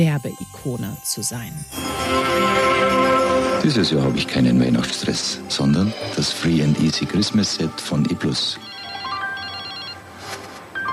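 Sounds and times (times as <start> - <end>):
speech: 0.0 - 8.7
telephone ringtone for an incoming call: 8.4 - 10.9.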